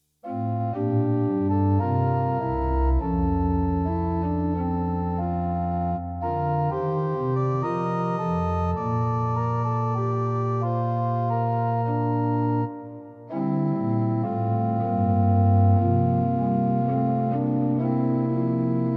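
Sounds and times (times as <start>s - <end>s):
organ: 0.2s - 18.9s.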